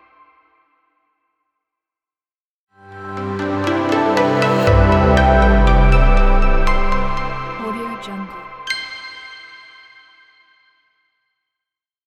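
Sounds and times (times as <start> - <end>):
clean ambient strings logo: 2.8 - 8.7.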